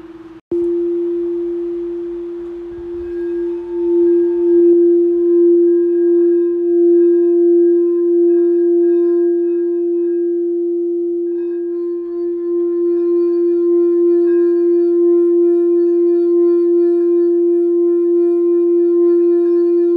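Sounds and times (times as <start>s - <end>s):
sound bowl struck and ringing in a healing session: 0.0s - 19.9s.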